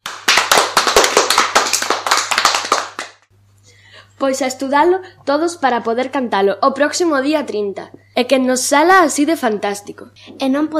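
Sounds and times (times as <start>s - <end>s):
crowd applauding performers: 0.0s - 3.2s
speech: 4.2s - 10.7s.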